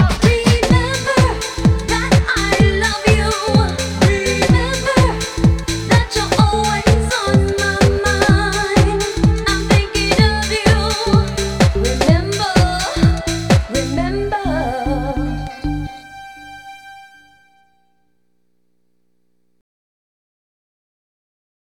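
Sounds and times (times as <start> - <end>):
soul bass line remix: 0.1 - 15.9.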